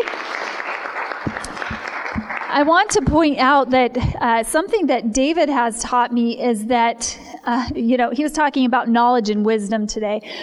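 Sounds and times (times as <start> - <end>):
audience applause: 0.0 - 2.7
speech: 2.5 - 10.4.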